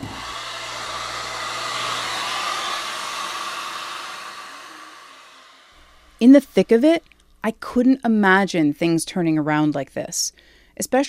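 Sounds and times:
hair dryer blow-drying gelled hair: 0:00.0 - 0:07.1
speech: 0:06.2 - 0:11.0.

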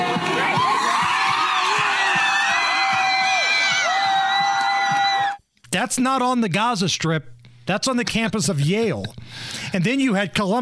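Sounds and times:
students cheering: 0:00.0 - 0:05.4
speech: 0:05.8 - 0:10.6.

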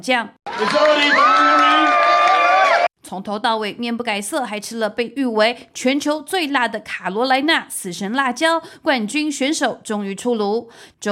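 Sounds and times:
speech: 0:00.0 - 0:01.9, 0:03.1 - 0:11.1
crowd applause at eating contest: 0:00.5 - 0:02.9.

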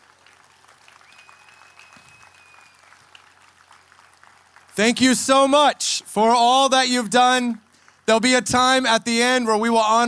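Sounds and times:
applause from a large crowd: 0:00.0 - 0:05.6
speech: 0:04.8 - 0:10.0.

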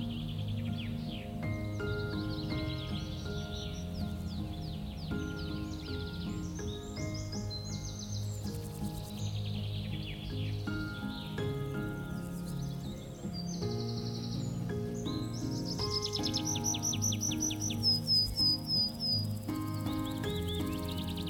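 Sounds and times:
birds chirping and trilling in the countryside: 0:00.0 - 0:21.2
soft relaxing music with sustained low tones: 0:00.0 - 0:21.2.

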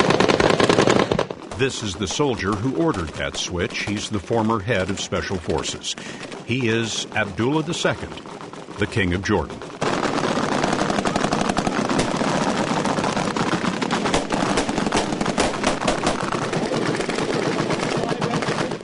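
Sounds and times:
automatic gunfire with live ammunition: 0:00.0 - 0:18.8
speech: 0:01.6 - 0:09.7.

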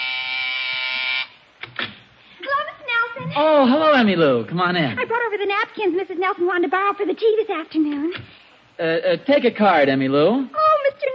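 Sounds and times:
doorbell buzzer ringing: 0:00.0 - 0:01.4
speech: 0:03.4 - 0:11.1.

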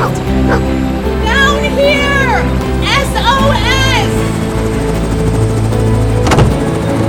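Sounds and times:
helicopter engine droning: 0:00.0 - 0:07.0.

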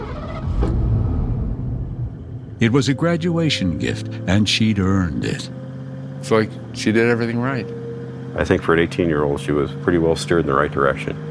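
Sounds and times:
road noise: 0:00.0 - 0:11.2
shiny blue Ford Mustang engine rumble: 0:00.0 - 0:11.2
speech: 0:02.6 - 0:05.6, 0:06.2 - 0:07.8, 0:08.4 - 0:11.2.

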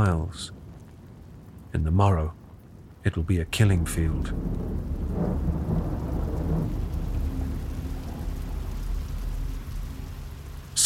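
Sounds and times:
speech: 0:00.0 - 0:00.6, 0:01.7 - 0:02.4, 0:03.0 - 0:05.5
heavy rain: 0:00.0 - 0:10.8
thunder: 0:03.6 - 0:10.6.

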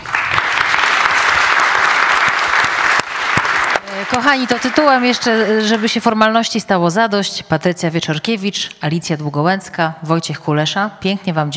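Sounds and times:
audience applause: 0:00.0 - 0:06.0
speech: 0:04.1 - 0:11.5.

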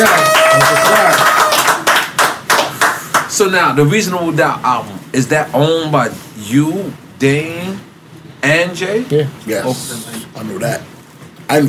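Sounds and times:
audience applause: 0:00.0 - 0:03.3
speech: 0:03.4 - 0:10.9, 0:11.5 - 0:11.6.

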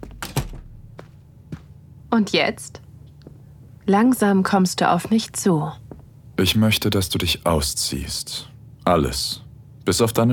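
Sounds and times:
hotel room door closing: 0:00.0 - 0:01.0
speech: 0:02.1 - 0:02.8, 0:03.9 - 0:05.8, 0:06.4 - 0:10.3.

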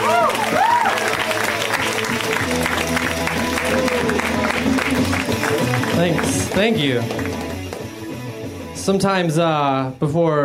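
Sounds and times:
audience applause at a comedy show: 0:00.0 - 0:07.6
speech: 0:06.0 - 0:07.3, 0:08.8 - 0:10.4.

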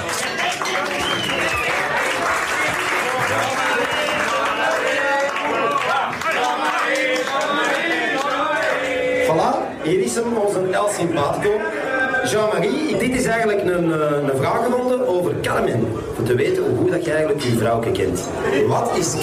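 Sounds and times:
encouraging audience applause: 0:00.0 - 0:09.2
speech: 0:10.2 - 0:19.2.

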